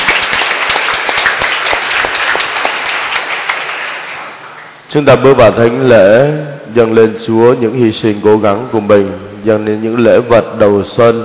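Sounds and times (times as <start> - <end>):
audience applauding loudly: 0.0 - 4.8
speech: 4.9 - 11.2.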